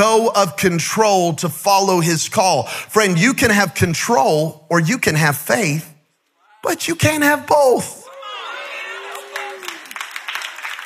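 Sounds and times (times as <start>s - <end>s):
speech: 0.0s - 5.9s, 6.6s - 8.0s
thin scattered handclaps: 9.4s - 10.8s.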